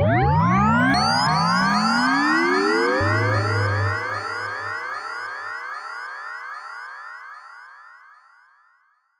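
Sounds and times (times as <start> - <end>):
Virus synthesizer LFO sweep: 0.0 - 5.6.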